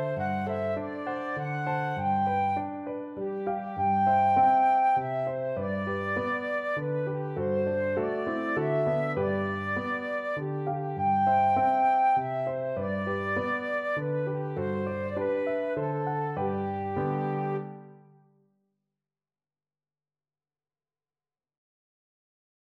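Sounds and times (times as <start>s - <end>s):
flute playing a lullaby: 0.0s - 18.0s.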